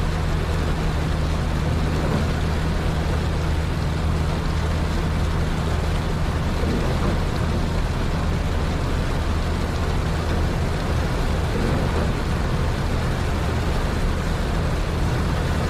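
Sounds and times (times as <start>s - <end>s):
low car engine hum: 0.0s - 15.6s
rain and road noise while night driving: 0.0s - 15.6s.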